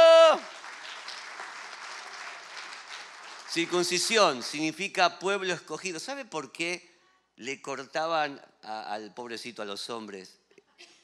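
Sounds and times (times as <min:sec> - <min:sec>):
person shouting: 0:00.0 - 0:00.5
crowd applauding: 0:00.0 - 0:04.6
speech: 0:03.6 - 0:10.4.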